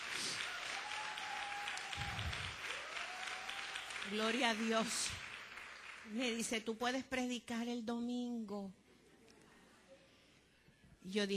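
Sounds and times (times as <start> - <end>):
audience applause: 0.0 - 6.4
speech: 4.0 - 5.3, 6.0 - 8.8, 11.0 - 11.3.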